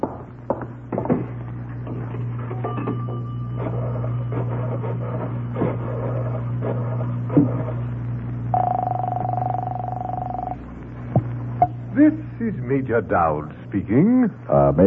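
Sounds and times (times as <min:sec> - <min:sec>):
constant low electrical hum: 0:00.0 - 0:14.8
telephone ringing tone: 0:08.5 - 0:10.6
speech: 0:12.0 - 0:14.8.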